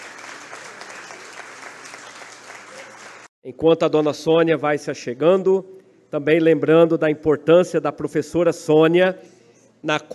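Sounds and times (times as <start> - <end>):
audience applause: 0.0 - 3.3
speech: 3.4 - 10.1.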